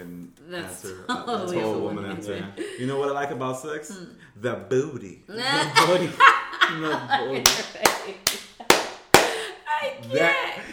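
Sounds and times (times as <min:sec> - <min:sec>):
speech: 0:00.5 - 0:08.3, 0:10.0 - 0:10.7
laughter: 0:00.9 - 0:03.5, 0:05.4 - 0:09.6
hand clap: 0:07.4 - 0:10.2.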